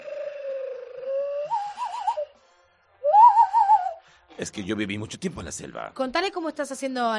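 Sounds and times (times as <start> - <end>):
bird call whistled through cupped hands: 0.0 - 2.4, 3.0 - 4.0
speech: 4.4 - 7.1.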